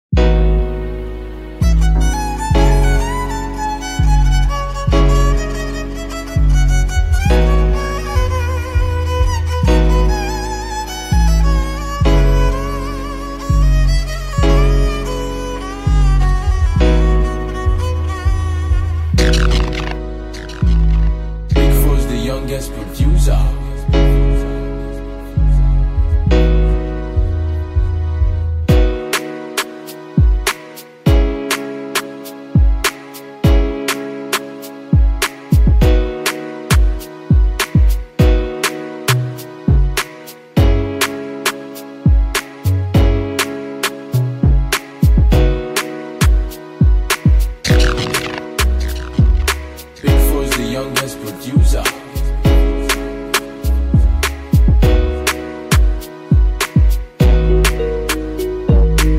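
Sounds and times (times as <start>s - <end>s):
instrumental music: 0.1s - 59.1s.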